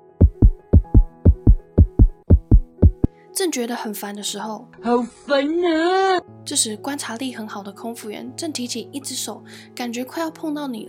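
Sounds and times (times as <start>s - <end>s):
fast heartbeat: 0.2s - 3.1s
speech: 3.4s - 10.8s.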